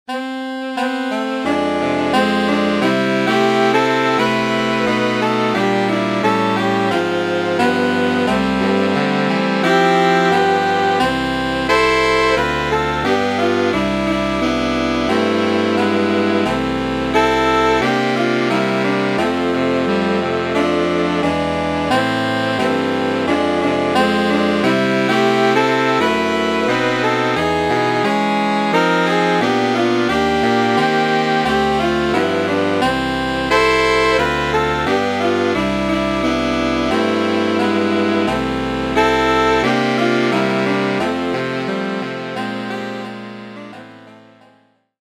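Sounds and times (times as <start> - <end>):
SAATB saxophone quartet: 0.1 - 44.6.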